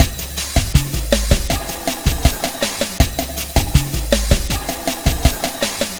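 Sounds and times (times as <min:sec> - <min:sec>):
lounge samba drum loop: 0:00.0 - 0:05.9.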